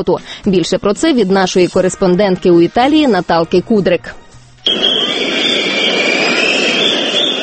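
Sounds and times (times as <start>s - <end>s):
speech: 0.0s - 5.5s
shrill whistling: 4.6s - 7.4s
protest crowd shouting: 4.7s - 7.4s.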